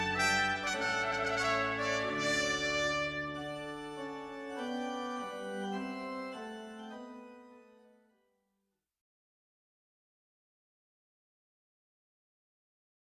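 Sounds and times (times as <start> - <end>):
trumpet march: 0.0 - 7.6.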